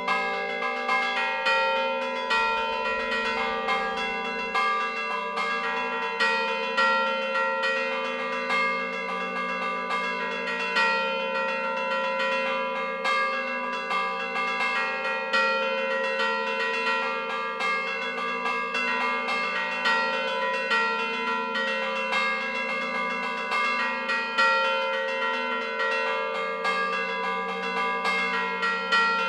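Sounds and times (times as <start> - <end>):
church bells ringing: 0.0 - 29.2.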